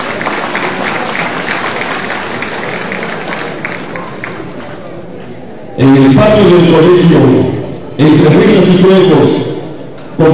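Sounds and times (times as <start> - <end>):
audience applause: 0.0 - 4.8
speech: 5.8 - 9.5.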